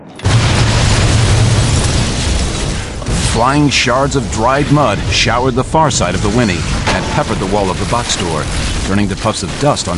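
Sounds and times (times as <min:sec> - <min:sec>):
blasting cap explosion: 0:00.1 - 0:09.9
speech: 0:03.4 - 0:09.9.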